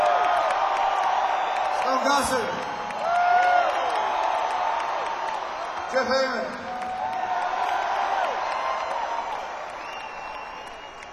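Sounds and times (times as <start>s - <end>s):
crowd clapping and cheering: 0.0s - 11.1s
speech: 1.9s - 2.7s, 5.9s - 6.7s
whistles: 9.7s - 11.1s.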